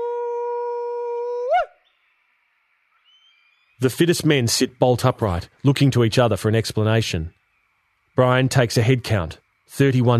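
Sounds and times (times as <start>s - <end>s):
Australian bush call shout: 0.0s - 2.4s, 3.0s - 5.6s
speech: 3.8s - 7.4s, 8.2s - 10.1s.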